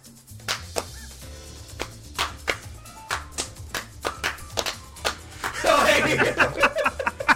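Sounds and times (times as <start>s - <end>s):
sharp slaps: 0.4s - 5.7s
laughter: 5.4s - 7.3s.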